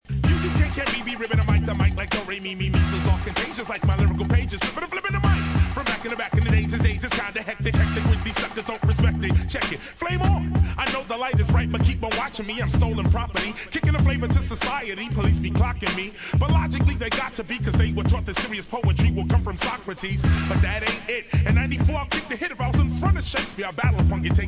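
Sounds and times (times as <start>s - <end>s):
hip hop music: 0.0s - 24.4s.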